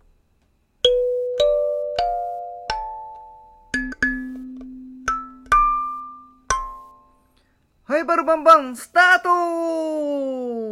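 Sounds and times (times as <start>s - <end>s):
kalimba melody: 0.8s - 7.0s
speech: 8.0s - 10.6s.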